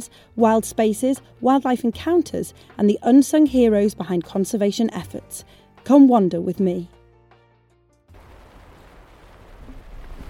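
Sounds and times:
speech: 0.0s - 7.0s
rain tapping on a teepee: 8.1s - 10.2s.

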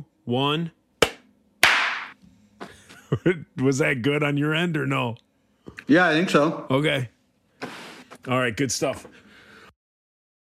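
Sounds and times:
speech: 0.3s - 0.8s, 3.1s - 5.2s, 5.8s - 9.2s
hand clap for recording sync: 1.0s - 2.2s.

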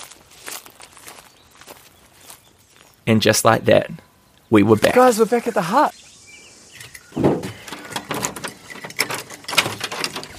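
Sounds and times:
footsteps walking up a track toward a hut: 0.0s - 3.1s
speech: 3.1s - 6.0s.

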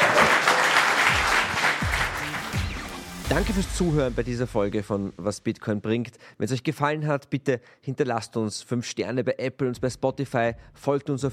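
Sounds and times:
cheers: 0.0s - 2.3s
audience applause: 0.0s - 3.0s
speech: 3.3s - 11.3s.

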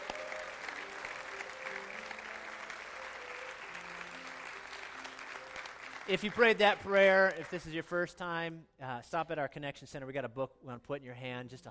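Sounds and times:
audience clapping: 0.0s - 7.9s
speech: 6.1s - 11.6s.

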